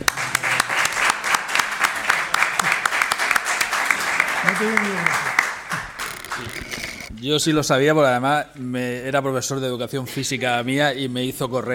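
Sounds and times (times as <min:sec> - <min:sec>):
applause: 0:00.0 - 0:07.1
speech: 0:04.6 - 0:05.3, 0:06.4 - 0:11.7.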